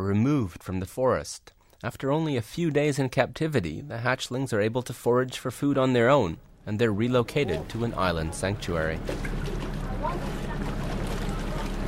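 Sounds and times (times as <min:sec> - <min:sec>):
speech: 0:00.0 - 0:10.4
boat from Picton pulling up at Motuara Island pier: 0:04.9 - 0:11.8.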